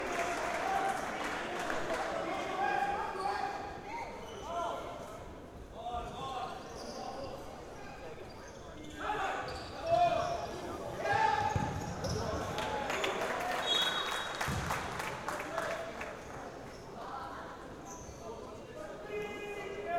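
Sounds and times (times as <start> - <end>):
men's league futsal match ambience: 0.0 - 19.9.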